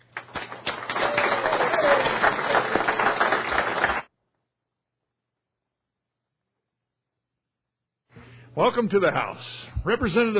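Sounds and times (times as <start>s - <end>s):
applause in a legislative chamber for visitors: 0.0s - 4.1s
speech: 8.6s - 10.3s.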